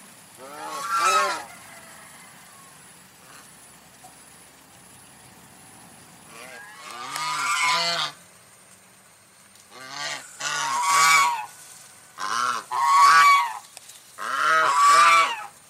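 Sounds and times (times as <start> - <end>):
domestic goose honking: 0.4 - 1.5, 6.3 - 8.2, 9.7 - 11.6, 12.2 - 15.6.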